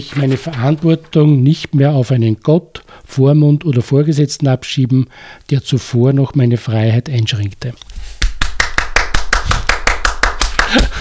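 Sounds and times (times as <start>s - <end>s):
speech: 0.0s - 7.9s
applause: 8.2s - 11.0s.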